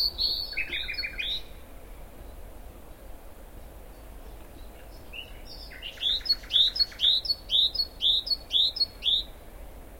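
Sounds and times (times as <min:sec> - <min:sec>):
common nightingale whistled song: 0:00.0 - 0:01.5, 0:05.0 - 0:09.3.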